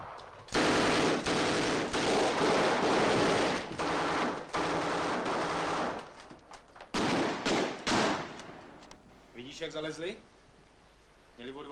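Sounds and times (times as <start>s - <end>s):
machine gun fire: 0.5s - 6.0s, 7.0s - 8.8s
speech: 9.6s - 10.3s, 11.4s - 11.7s.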